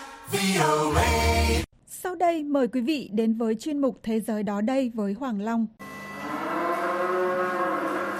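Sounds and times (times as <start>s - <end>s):
speech: 0.3s - 1.6s, 2.2s - 5.9s
dairy cows mooing on a farm in Kozara, Bosnia and Herzegovina: 6.0s - 8.1s.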